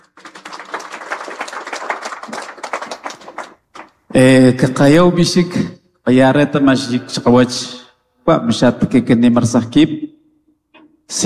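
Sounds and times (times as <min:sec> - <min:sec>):
applause: 0:00.0 - 0:04.1
speech: 0:04.2 - 0:10.0.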